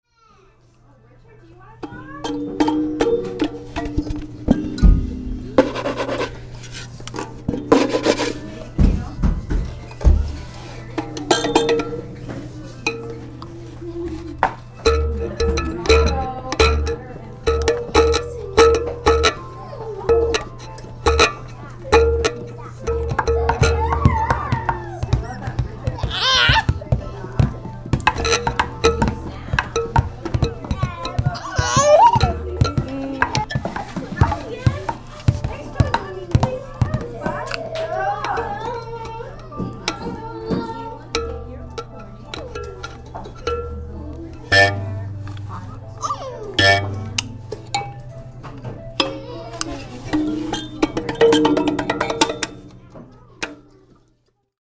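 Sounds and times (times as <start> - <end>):
kalimba: 1.8 - 8.4, 11.0 - 25.4, 27.9 - 33.5, 41.1 - 48.4, 49.0 - 53.7
drums: 1.8 - 53.8.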